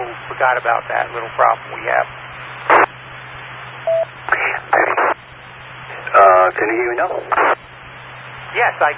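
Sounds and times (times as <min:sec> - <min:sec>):
radio link keying up with bursts of hissing static: 0:00.0 - 0:08.9
speech: 0:00.4 - 0:02.2, 0:06.2 - 0:07.7, 0:08.6 - 0:08.9
brief pure mid-pitched beep: 0:03.9 - 0:04.1.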